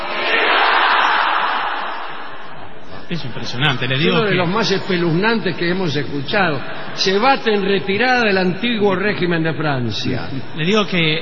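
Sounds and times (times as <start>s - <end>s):
group shouting a rallying cry: 0.0s - 2.4s
speech: 3.1s - 11.1s.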